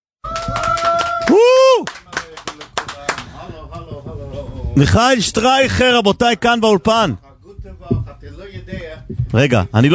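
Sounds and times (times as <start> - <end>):
audience applause: 0.3 - 3.3
speech: 4.8 - 7.9, 8.7 - 9.9.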